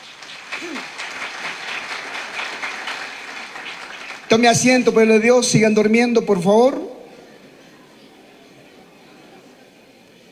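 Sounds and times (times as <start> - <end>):
audience applauding: 0.0 - 4.9
speech: 4.3 - 6.9.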